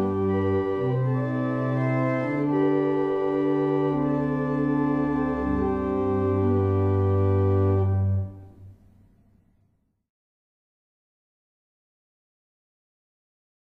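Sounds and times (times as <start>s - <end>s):
barrel organs playing a morning hymn: 0.0s - 8.7s.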